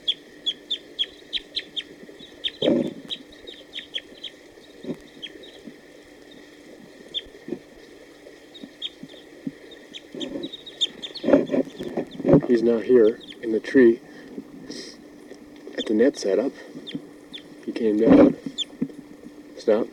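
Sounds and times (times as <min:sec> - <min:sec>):
wild male bird singing in short phrases: 0:00.0 - 0:07.5, 0:08.4 - 0:13.6, 0:16.8 - 0:17.7, 0:18.4 - 0:18.8
louder lower harsh bird calls: 0:00.0 - 0:13.6, 0:15.7 - 0:18.8
speech: 0:12.6 - 0:14.1, 0:15.9 - 0:16.7, 0:17.8 - 0:18.4, 0:19.7 - 0:19.9.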